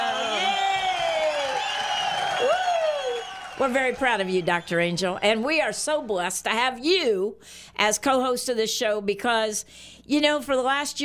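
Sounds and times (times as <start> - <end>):
audience applause and cheering: 0.0 - 4.9
speech: 3.6 - 11.0.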